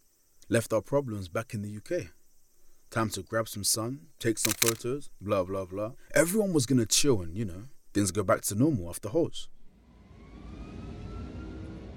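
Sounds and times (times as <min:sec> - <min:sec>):
speech: 0:00.5 - 0:02.2, 0:02.9 - 0:09.6
airplane engine drone: 0:09.8 - 0:11.9.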